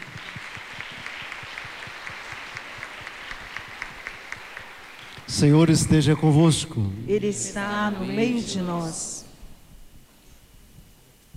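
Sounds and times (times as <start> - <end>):
audience applause: 0.0 - 6.1
speech: 5.3 - 9.2.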